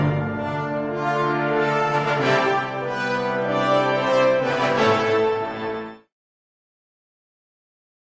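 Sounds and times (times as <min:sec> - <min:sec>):
festival fanfare: 0:00.0 - 0:06.0.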